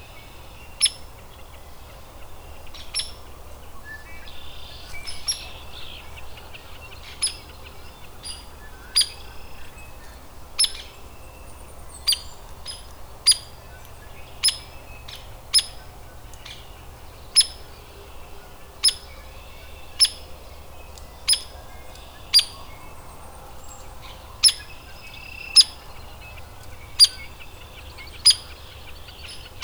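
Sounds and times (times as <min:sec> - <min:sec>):
other birds chirping: 0:00.0 - 0:29.6
hairy woodpecker peek calls: 0:04.7 - 0:09.7, 0:10.6 - 0:11.0, 0:11.9 - 0:29.6.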